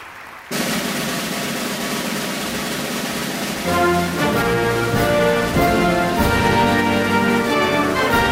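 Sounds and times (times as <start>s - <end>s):
national anthem recording: 0.5s - 8.3s.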